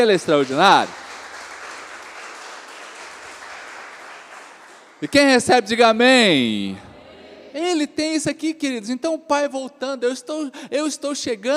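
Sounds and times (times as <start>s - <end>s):
speech: 0.0s - 1.0s, 5.0s - 6.9s, 7.6s - 11.5s
audience applause: 0.0s - 5.5s.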